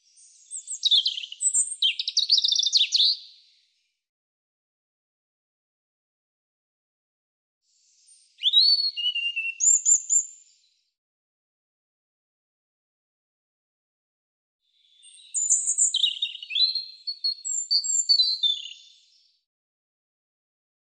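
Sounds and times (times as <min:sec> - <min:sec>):
European robin singing high phrases of slurred whistles and trills: 0:00.1 - 0:03.5, 0:07.9 - 0:10.6, 0:14.8 - 0:19.2.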